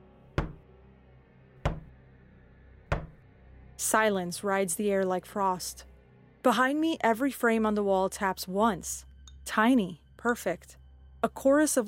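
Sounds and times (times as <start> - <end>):
knuckles knocking on a door: 0.4 - 0.6, 1.7 - 1.9, 2.9 - 3.2
speech: 3.8 - 11.8.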